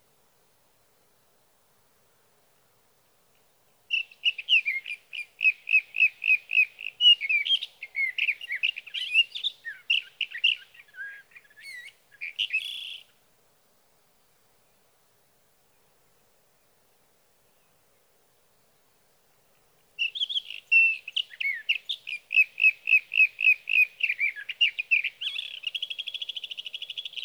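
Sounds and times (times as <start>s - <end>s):
Sage thrasher song: 4.0s - 13.1s, 20.0s - 27.2s.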